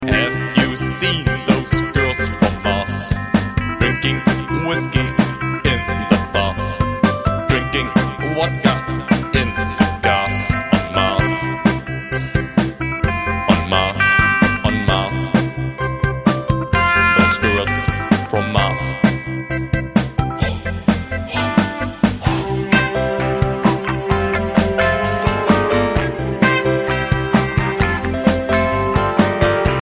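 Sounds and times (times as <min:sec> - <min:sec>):
blues music: 0:00.0 - 0:29.8.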